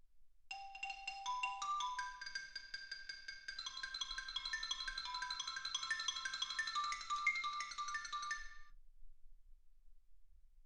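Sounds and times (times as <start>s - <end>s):
xylophone: 0.5s - 8.7s.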